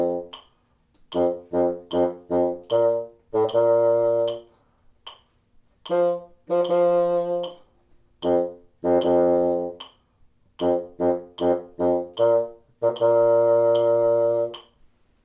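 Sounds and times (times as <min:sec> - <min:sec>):
Polish bassoon: 0:00.0 - 0:00.5, 0:01.1 - 0:04.6, 0:05.9 - 0:10.0, 0:10.6 - 0:14.7.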